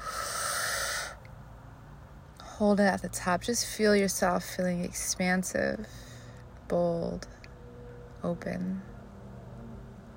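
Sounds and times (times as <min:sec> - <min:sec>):
deep inhale through the nose during a guided breathing exercise: 0:00.0 - 0:01.2
speech: 0:02.6 - 0:06.0, 0:06.7 - 0:07.4, 0:08.2 - 0:08.9.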